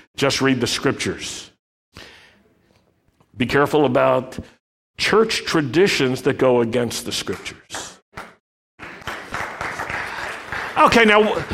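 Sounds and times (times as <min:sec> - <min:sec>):
speech: 0:00.2 - 0:02.1, 0:03.4 - 0:07.9, 0:10.8 - 0:11.5
audience clapping: 0:07.3 - 0:11.5.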